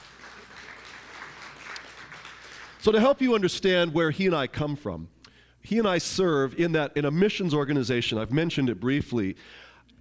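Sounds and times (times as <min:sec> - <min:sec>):
audience clapping: 0:00.0 - 0:03.2
speech: 0:02.8 - 0:09.7.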